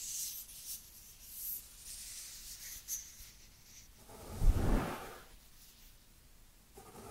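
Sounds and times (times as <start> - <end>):
dry hands rubbing together: 1.8 - 5.8.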